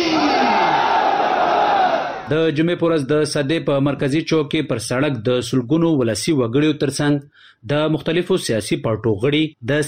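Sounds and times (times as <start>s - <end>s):
crowd chanting slogans at a peace gathering in Sadda, Kurram: 0.1s - 2.3s
speech: 2.3s - 9.8s.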